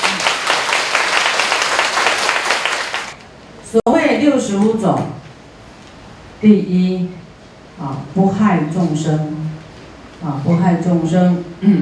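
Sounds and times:
clapping: 0:00.0 - 0:03.2
speech: 0:03.8 - 0:05.2, 0:06.4 - 0:07.2, 0:07.8 - 0:09.3, 0:10.2 - 0:11.7.

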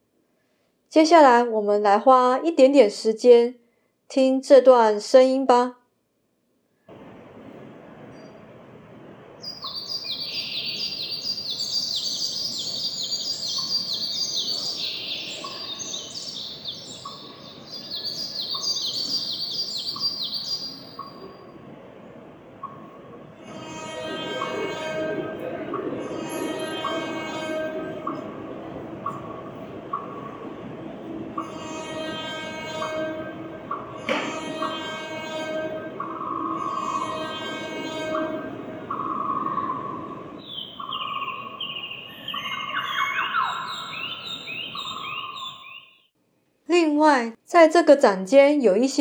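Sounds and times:
speech: 0:00.9 - 0:05.8, 0:47.6 - 0:49.0
train passing: 0:06.9 - 0:45.8
birds chirping: 0:06.9 - 0:46.1.

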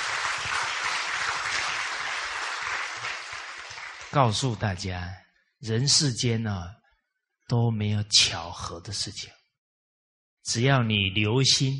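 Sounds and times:
audience applause: 0:00.0 - 0:04.2
speech: 0:04.1 - 0:06.8, 0:07.5 - 0:09.4, 0:10.4 - 0:11.7.

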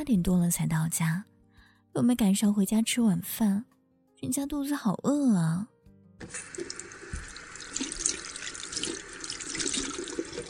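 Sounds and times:
speech: 0:00.0 - 0:01.3, 0:02.0 - 0:06.8
tap water running, washing hands: 0:06.2 - 0:10.4.

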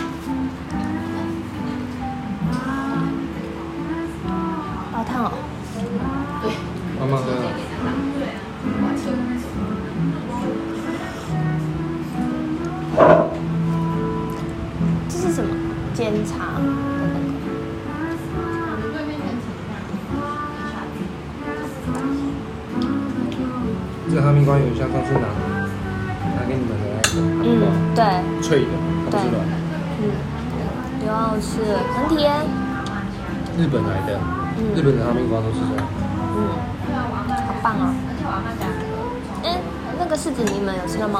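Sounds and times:
murmur of voices in a café on Changrong Street in Tainan: 0:00.0 - 0:41.1
clinks of cups or dishes: 0:13.0 - 0:13.4, 0:27.0 - 0:27.4.

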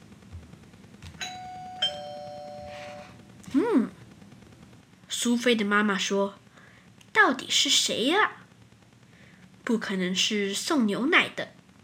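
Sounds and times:
faint humming background: 0:00.0 - 0:11.8
doorbell ringing with two chime notes: 0:01.2 - 0:03.1
speech: 0:05.2 - 0:06.4, 0:07.3 - 0:08.4, 0:09.7 - 0:11.6.

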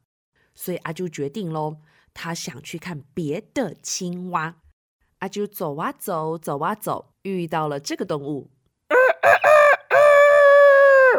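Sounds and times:
speech: 0:00.6 - 0:04.6, 0:05.2 - 0:09.5
rooster crowing: 0:08.9 - 0:11.1.

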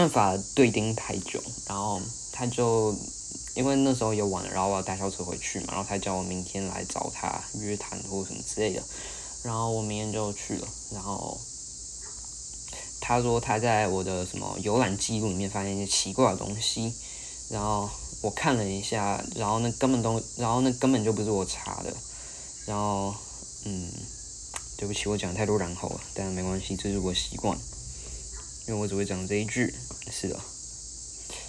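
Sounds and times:
speech: 0:00.0 - 0:11.5, 0:13.0 - 0:24.1, 0:24.8 - 0:27.7, 0:28.7 - 0:30.5
insects chirping outdoors on summer night near mountains: 0:00.0 - 0:31.4
birds calling near mountains: 0:11.9 - 0:12.3, 0:27.9 - 0:28.6.

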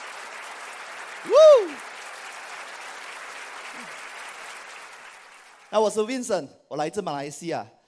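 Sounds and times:
crowd clapping and cheering: 0:00.0 - 0:06.2
loud long scream: 0:01.2 - 0:01.8
speech: 0:01.2 - 0:01.9, 0:05.7 - 0:07.8.

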